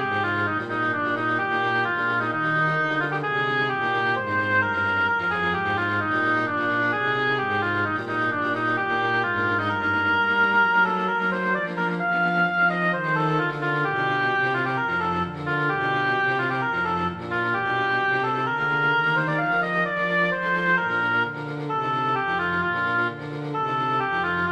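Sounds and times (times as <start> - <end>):
oboe playing a presto arrangement: 0.0 - 24.5
strings playing a presto arrangement: 0.0 - 24.5.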